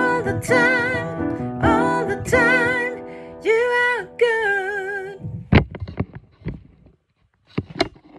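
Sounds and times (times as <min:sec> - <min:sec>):
soprano and bass singing: 0:00.0 - 0:05.5.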